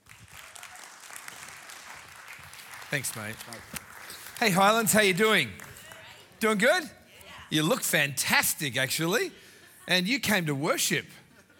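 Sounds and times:
church congregation clapping to welcome a guest speaker: 0.0s - 6.9s
speech: 2.9s - 5.6s, 6.4s - 11.2s.

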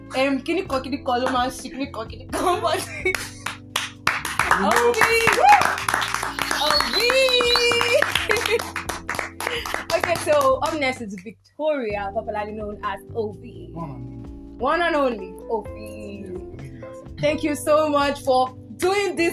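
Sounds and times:
speech: 0.1s - 3.4s, 4.6s - 7.9s, 9.5s - 16.5s, 17.2s - 19.3s
round of applause: 3.1s - 10.8s.

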